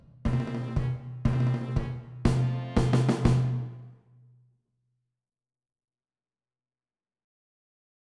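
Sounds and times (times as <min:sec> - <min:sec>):
percussion: 0:00.0 - 0:03.8.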